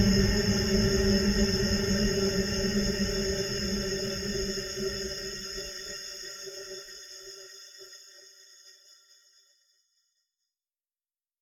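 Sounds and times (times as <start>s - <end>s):
horror ambience: 0.0s - 8.1s.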